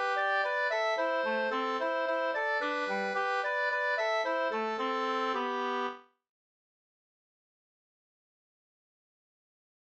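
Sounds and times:
slängpolska folk dance tune: 0.0s - 6.0s.

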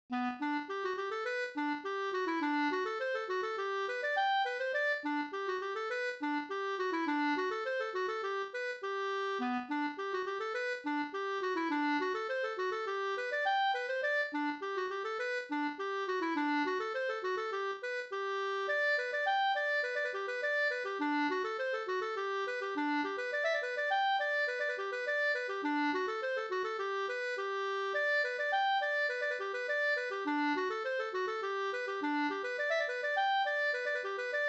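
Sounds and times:
polka music: 0.1s - 34.4s.

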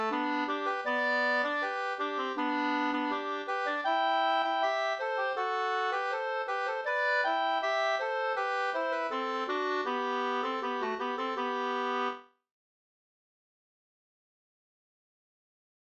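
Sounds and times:
two-part Swedish folk wedding march: 0.0s - 12.1s.

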